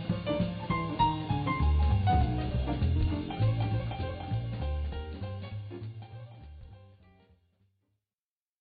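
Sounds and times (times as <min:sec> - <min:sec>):
easy listening swing jazz: 0:00.0 - 0:07.0.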